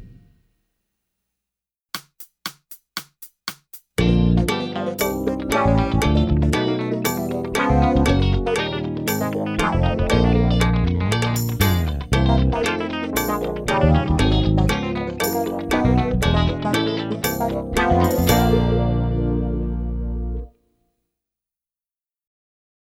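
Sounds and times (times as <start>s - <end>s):
percussion playing chromatic scales: 3.4s - 20.4s.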